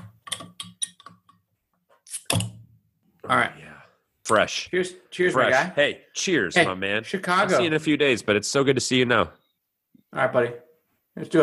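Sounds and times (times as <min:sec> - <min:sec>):
beer bottle opened with bottle opener: 0:02.0 - 0:02.6
speech: 0:03.3 - 0:03.6, 0:04.3 - 0:09.4, 0:10.1 - 0:10.6, 0:11.2 - 0:11.4.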